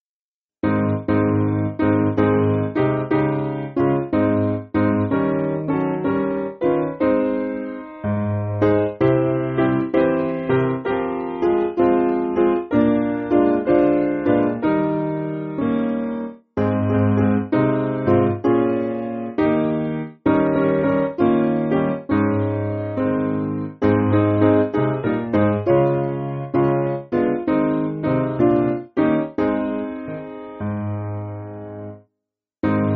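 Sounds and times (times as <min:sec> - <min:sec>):
piano backing music for churches: 0:00.6 - 0:32.0, 0:32.6 - 0:32.9.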